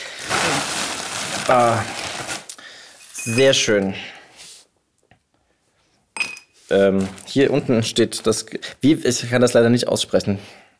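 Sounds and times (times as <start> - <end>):
speech: 1.5 - 2.0, 3.2 - 4.2, 6.7 - 10.6
candied nuts tipped into a glass jar: 3.0 - 3.6.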